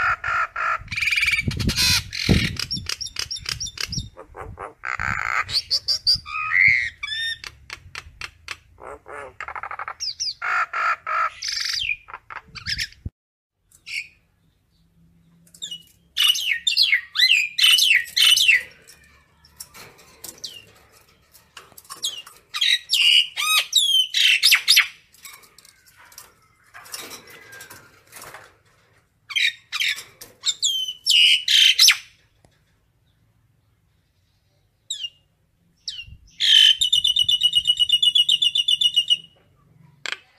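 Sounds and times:
common myna harsh calls and whistles: 0.0s - 13.1s, 15.6s - 19.6s, 21.9s - 25.0s, 29.3s - 32.2s, 34.8s - 39.4s.

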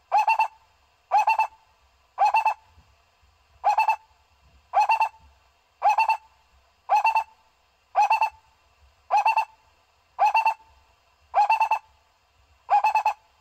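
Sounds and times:
owl hooting: 0.1s - 1.6s, 2.2s - 2.6s, 3.6s - 4.1s, 4.7s - 5.2s, 5.8s - 6.3s, 6.9s - 7.4s, 8.0s - 8.4s, 9.1s - 9.6s, 10.2s - 10.7s, 11.3s - 11.9s, 12.7s - 13.2s.

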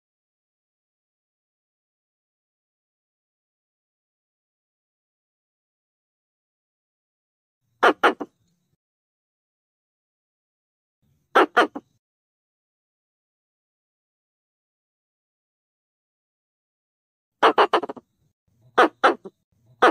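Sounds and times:
Pallas's squirrel chattering: 7.8s - 8.3s, 11.4s - 12.0s, 17.4s - 18.0s, 18.8s - 19.9s.

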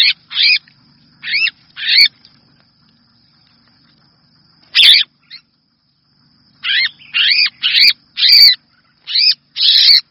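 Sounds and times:
red-whiskered bulbul distress call: 0.0s - 0.6s, 1.2s - 2.2s, 4.7s - 5.5s, 6.5s - 10.1s.

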